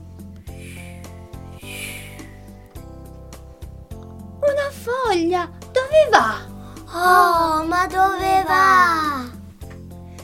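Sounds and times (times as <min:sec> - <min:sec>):
whistling gust of wind: 0:00.5 - 0:02.8
speech: 0:04.8 - 0:09.3.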